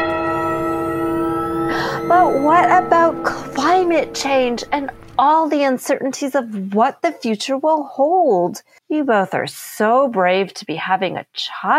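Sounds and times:
ominous clock chime: 0.0 - 5.6
speech: 2.3 - 11.7.

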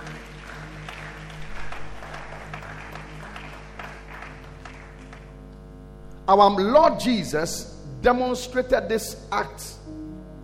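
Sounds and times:
audience clapping hands: 0.0 - 5.5
speech: 6.3 - 9.8.

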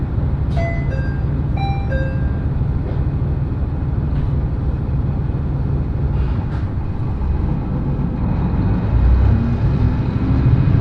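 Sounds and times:
Echigo Tokimeki Railway diesel train ride rumble: 0.0 - 10.8
chime-like tones: 0.6 - 2.4.

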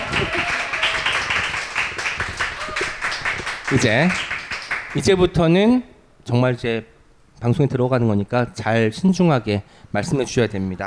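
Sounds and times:
audience applause: 0.0 - 5.0
speech: 3.7 - 4.3, 4.9 - 10.8.

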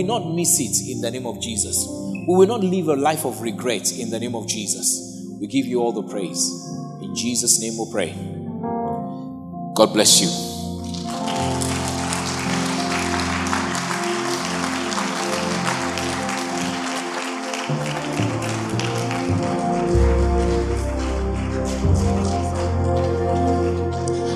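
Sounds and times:
speech: 0.0 - 8.8, 9.8 - 11.8
audience clapping and applauding: 10.8 - 24.3.

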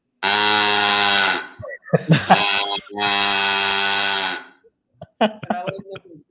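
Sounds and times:
cow call noisemaker buzzy reedy moo tones: 0.2 - 1.6, 2.3 - 4.6
voice sounds: 0.8 - 6.2
laughter: 1.4 - 3.2, 5.0 - 6.2
speech: 1.9 - 3.4.

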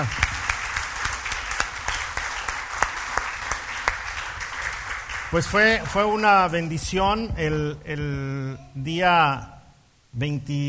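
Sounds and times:
speech: 0.0 - 0.3, 5.3 - 10.6
audience clapping: 0.0 - 7.6.

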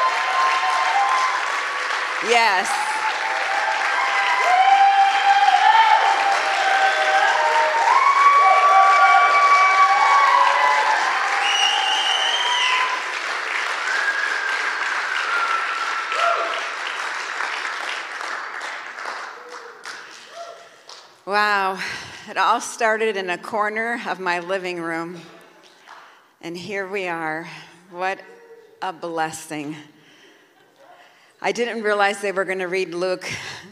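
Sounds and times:
audience cheering: 0.0 - 18.0
audience applause: 0.0 - 21.0
speech: 2.2 - 2.8, 21.8 - 25.4, 26.4 - 30.0, 31.4 - 33.7.

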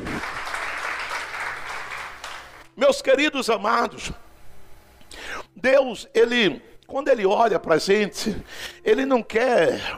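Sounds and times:
audience applauding: 0.0 - 2.8
speech: 2.8 - 4.2, 5.6 - 9.9.

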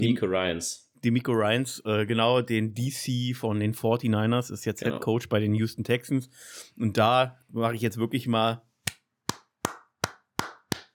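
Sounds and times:
speech: 0.0 - 8.7
hand claps from a single person: 8.9 - 10.9.

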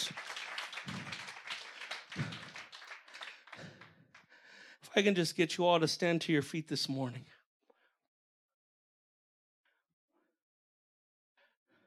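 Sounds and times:
audience applause: 0.0 - 4.2
speech: 5.0 - 7.3.

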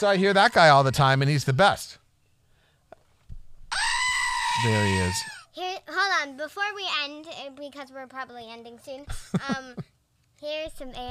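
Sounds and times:
speech: 0.0 - 2.0, 4.6 - 11.0
screaming goat toy mounted on a little box: 3.7 - 5.4.

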